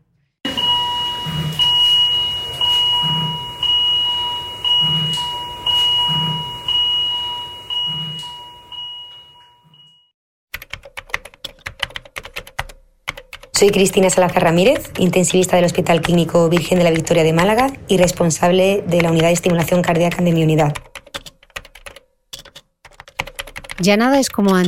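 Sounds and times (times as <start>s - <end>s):
ICU vital signs monitor beeping: 0.5s - 10.1s, 13.6s - 20.8s
keyboard typing: 10.5s - 24.6s
speech: 13.6s - 20.9s, 23.8s - 24.6s.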